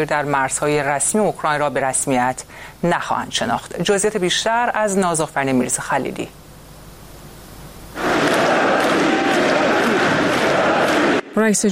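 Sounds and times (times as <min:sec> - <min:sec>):
speech: 0:00.0 - 0:06.4, 0:11.4 - 0:11.6
crowd chanting led by Putin and leaders of four occupied Ukrainian regions: 0:08.0 - 0:11.4.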